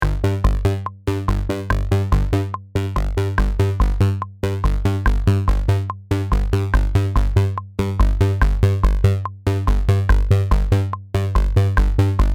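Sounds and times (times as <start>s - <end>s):
bass: 0.0s - 12.3s.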